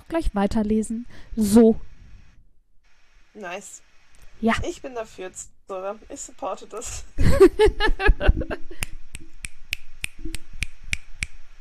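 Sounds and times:
speech: 0:00.1 - 0:01.9, 0:03.4 - 0:09.0
laughter: 0:07.2 - 0:08.8
finger snapping: 0:08.8 - 0:11.4.

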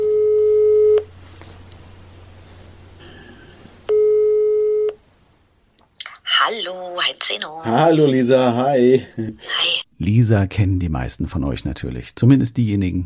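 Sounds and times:
telephone ringing tone after dialing a number: 0:00.0 - 0:01.0, 0:03.9 - 0:05.0
speech: 0:07.2 - 0:13.0.

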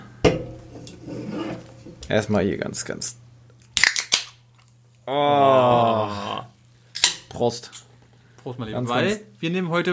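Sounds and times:
speech: 0:02.0 - 0:03.2, 0:05.1 - 0:06.5, 0:07.4 - 0:09.9
small can opening: 0:03.6 - 0:04.7.

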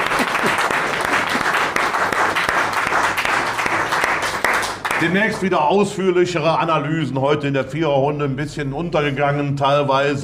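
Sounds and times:
audience applause: 0:00.0 - 0:05.2
speech: 0:05.0 - 0:10.2.

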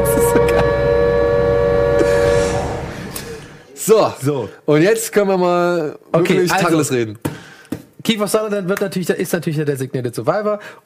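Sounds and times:
spoiler alarm sound effect: 0:00.0 - 0:03.8
speech: 0:03.9 - 0:07.4, 0:08.0 - 0:10.8.

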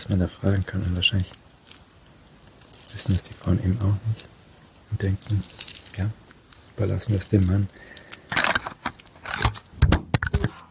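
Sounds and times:
speech: 0:00.0 - 0:01.4, 0:03.0 - 0:06.2, 0:06.8 - 0:08.0
microphone falling and clattering: 0:08.3 - 0:10.7.

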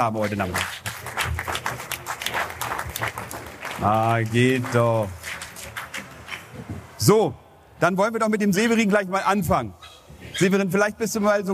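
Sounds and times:
speech: 0:00.0 - 0:00.9, 0:03.0 - 0:05.2, 0:07.0 - 0:09.8, 0:10.4 - 0:11.5
audience applause: 0:00.2 - 0:06.6.

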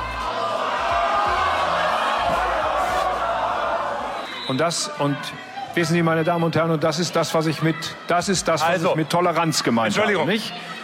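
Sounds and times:
audience booing: 0:00.0 - 0:04.5
speech: 0:04.5 - 0:10.8.

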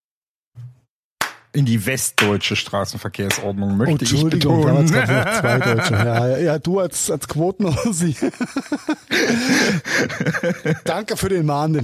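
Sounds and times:
hand claps: 0:01.2 - 0:01.5, 0:02.2 - 0:02.4, 0:03.3 - 0:03.5
speech: 0:01.5 - 0:11.8
laughter: 0:04.2 - 0:06.6, 0:07.6 - 0:11.3.

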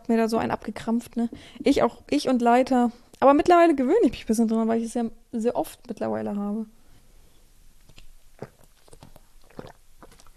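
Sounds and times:
speech: 0:00.1 - 0:06.8
person drinking with wet gulps and clicks: 0:07.9 - 0:10.3.

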